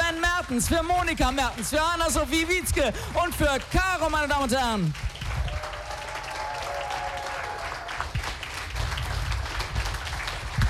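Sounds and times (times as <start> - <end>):
speech: 0.5 - 5.1
audience applause: 2.4 - 10.6.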